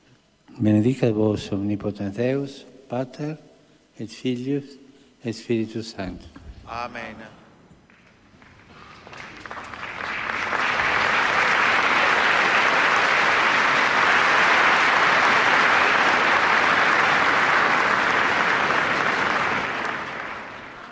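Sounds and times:
speech: 0:00.6 - 0:07.4
large audience applause: 0:07.9 - 0:20.9.

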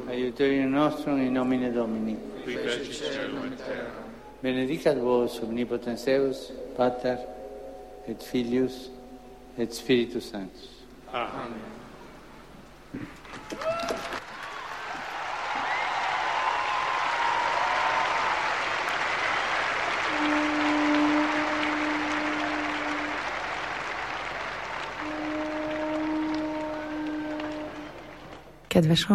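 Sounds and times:
speech: 0:00.1 - 0:07.4, 0:08.0 - 0:09.0, 0:09.6 - 0:11.8, 0:28.8 - 0:29.1
audience applause after papal blessing: 0:13.0 - 0:28.6.

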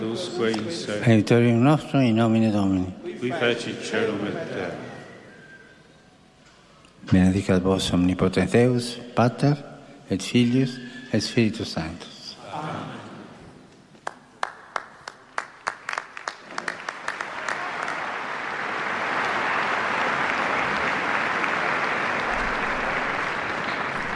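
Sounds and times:
speech: 0:00.1 - 0:04.9, 0:07.1 - 0:12.8
large crowd applause: 0:14.0 - 0:24.1.

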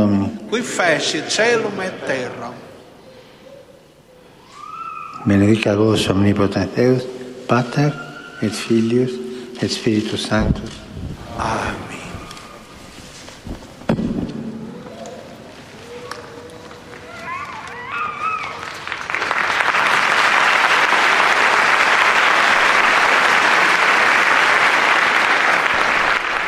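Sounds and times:
speech: 0:00.0 - 0:02.7, 0:05.2 - 0:10.8, 0:11.4 - 0:11.8
church audience applauding: 0:16.6 - 0:26.4.

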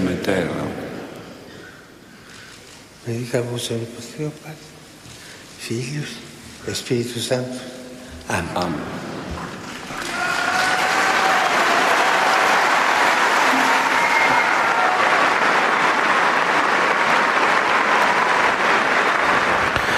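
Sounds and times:
speech: 0:00.2 - 0:00.8, 0:03.1 - 0:04.7, 0:05.6 - 0:09.1
audience applause: 0:09.8 - 0:19.9.

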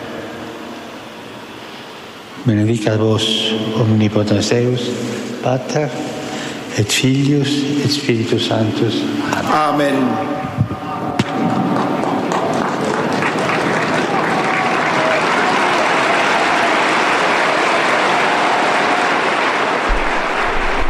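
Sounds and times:
speech: 0:02.5 - 0:06.2, 0:06.7 - 0:10.7
storm of applause from pilgrims in Saint Peter's Square: 0:10.9 - 0:20.8.

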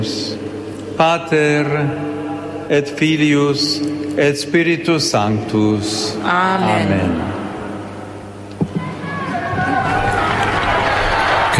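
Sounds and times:
speech: 0:00.0 - 0:07.4
thunderous applause greeting the Pope: 0:09.5 - 0:11.5.

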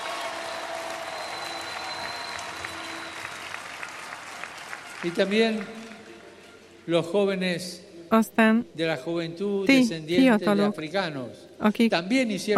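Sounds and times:
loud audience applause: 0:00.0 - 0:06.6
speech: 0:05.0 - 0:05.8, 0:06.9 - 0:12.5.

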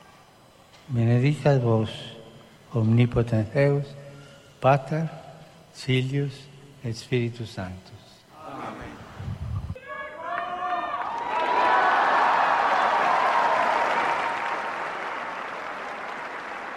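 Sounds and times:
speech: 0:00.9 - 0:02.1, 0:02.7 - 0:04.0, 0:04.6 - 0:05.2, 0:05.8 - 0:08.1
crowd applause and cheering: 0:10.3 - 0:16.7.

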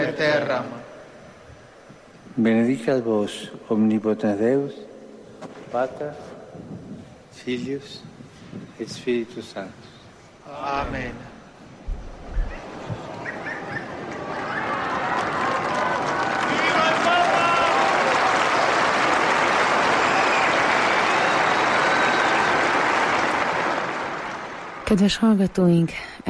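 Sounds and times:
speech: 0:00.2 - 0:01.0, 0:02.4 - 0:06.8, 0:07.4 - 0:09.9, 0:10.5 - 0:11.3, 0:24.9 - 0:26.2
crowd applause: 0:12.6 - 0:24.9.

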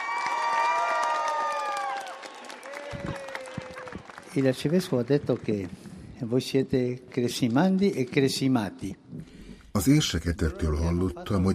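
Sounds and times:
enthusiastic applause from young crowd: 0:00.0 - 0:06.2
speech: 0:04.4 - 0:09.0, 0:09.8 - 0:11.5.

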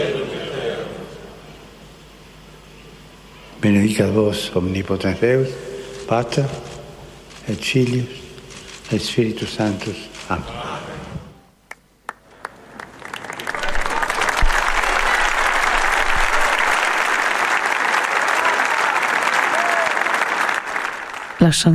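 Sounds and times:
speech: 0:03.6 - 0:06.7, 0:07.5 - 0:08.2, 0:08.9 - 0:10.7, 0:21.4 - 0:21.7
large crowd applauding after papal blessing: 0:11.7 - 0:21.7.

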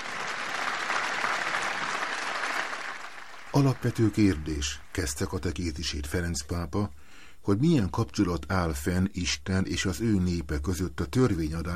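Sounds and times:
large audience applause in a big room: 0:00.0 - 0:04.9
speech: 0:03.6 - 0:11.7.

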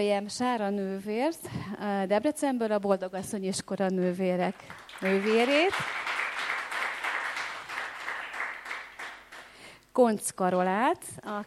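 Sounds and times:
speech: 0:00.0 - 0:06.0, 0:10.0 - 0:11.4
audience applause: 0:04.6 - 0:09.5.

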